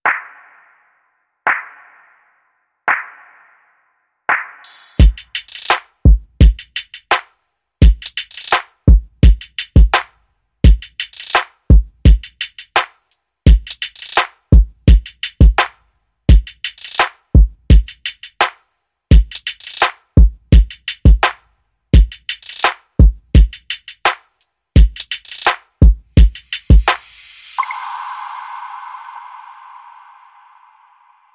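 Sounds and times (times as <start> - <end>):
smooth beat: 4.6 - 15.7, 16.3 - 18.4, 19.1 - 21.4, 22.0 - 31.3.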